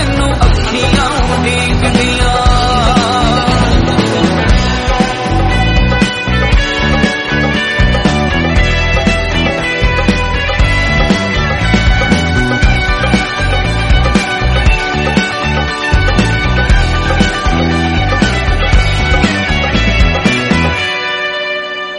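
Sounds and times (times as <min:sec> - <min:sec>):
instrumental background music: 0:00.0 - 0:21.9.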